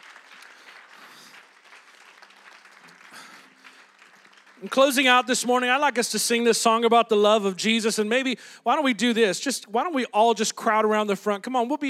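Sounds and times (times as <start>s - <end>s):
audience applause: 0.0s - 5.8s
speech: 4.6s - 11.8s.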